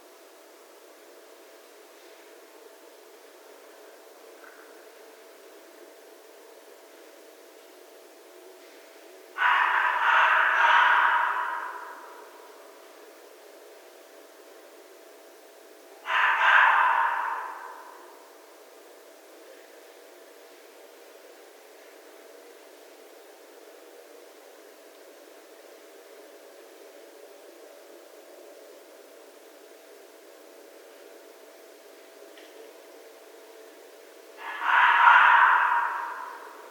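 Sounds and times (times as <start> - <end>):
red fox calling: 9.4 - 12.6, 16.0 - 18.2, 34.4 - 36.6.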